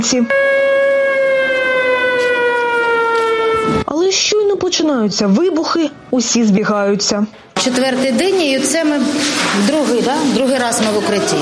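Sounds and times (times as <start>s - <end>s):
speech: 0.0s - 0.7s, 3.7s - 11.3s
air raid siren: 0.3s - 3.9s.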